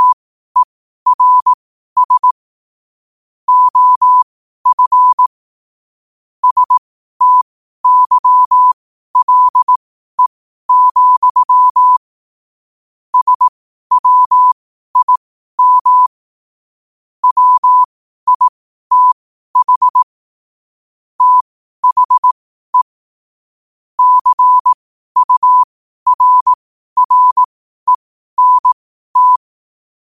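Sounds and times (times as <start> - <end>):
morse code at 5 wpm: 0.0 - 2.4, 3.5 - 5.3, 6.4 - 9.8, 10.7 - 12.0, 13.2 - 16.2, 17.2 - 20.0, 21.2 - 23.0, 24.0 - 29.5.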